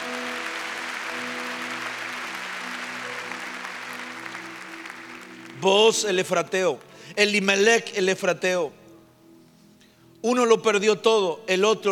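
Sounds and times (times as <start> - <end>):
audience clapping: 0.0 - 7.0
speech: 5.6 - 8.8, 10.2 - 11.9.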